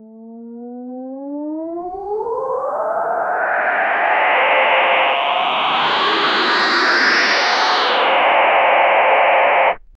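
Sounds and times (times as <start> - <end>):
skill power charging effect: 2.4 - 9.8.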